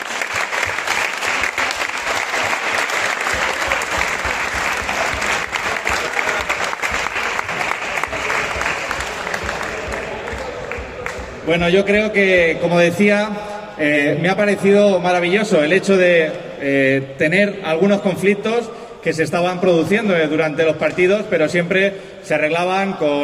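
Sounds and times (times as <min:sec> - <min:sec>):
audience applause: 0:00.0 - 0:11.5
speech: 0:11.5 - 0:23.2.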